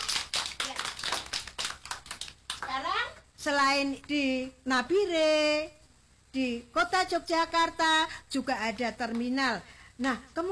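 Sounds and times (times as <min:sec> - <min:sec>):
hands clapping in praise of a child during a lesson: 0:00.0 - 0:02.8
speech: 0:02.7 - 0:10.5.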